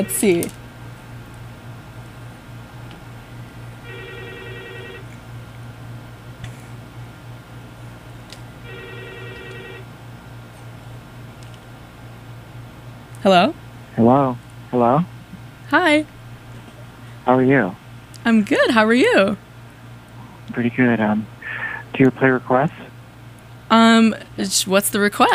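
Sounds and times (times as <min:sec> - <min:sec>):
telephone ringing for an incoming call: 0:00.0 - 0:00.5, 0:03.8 - 0:05.1, 0:08.6 - 0:09.9
speech: 0:00.0 - 0:00.6, 0:13.2 - 0:15.1, 0:15.7 - 0:16.2, 0:17.3 - 0:19.4, 0:20.5 - 0:21.4, 0:22.0 - 0:22.9, 0:23.7 - 0:25.3
steady hum: 0:00.0 - 0:25.3.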